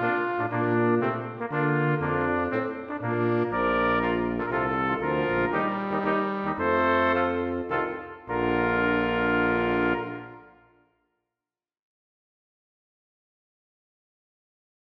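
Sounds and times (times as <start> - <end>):
brass quartet with baritone and tuba playing a minuet: 0.0 - 10.8.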